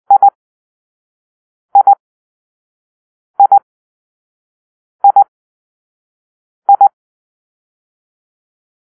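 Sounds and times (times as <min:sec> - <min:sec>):
morse code for the letter I: 0:00.1 - 0:00.3, 0:01.8 - 0:02.0, 0:03.4 - 0:03.6.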